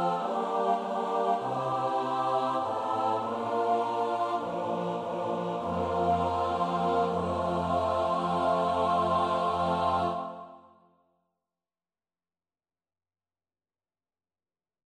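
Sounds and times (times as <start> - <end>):
four-part SATB choir singing: 0.0 - 10.7.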